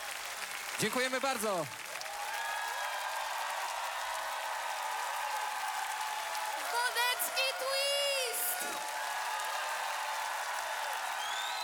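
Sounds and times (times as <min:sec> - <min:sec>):
audience applause: 0:00.0 - 0:11.6
speech: 0:00.8 - 0:01.8.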